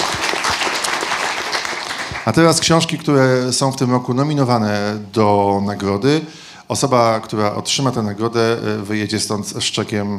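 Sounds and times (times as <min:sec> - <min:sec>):
audience applause: 0:00.0 - 0:02.4
speech: 0:02.3 - 0:10.1.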